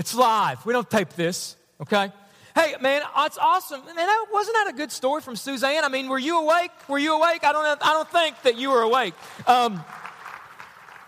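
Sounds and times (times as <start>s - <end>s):
speech: 0.0s - 10.0s
weak sympathy clapping from audience: 7.8s - 11.0s.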